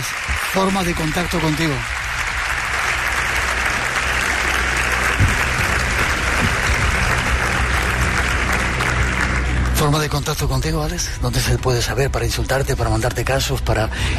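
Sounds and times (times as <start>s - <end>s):
speech: 0.0s - 2.0s, 9.8s - 14.1s
audience applause: 0.0s - 10.1s.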